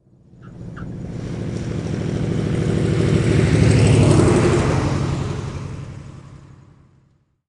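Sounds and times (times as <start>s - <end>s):
propeller airplane: 0.0s - 7.3s.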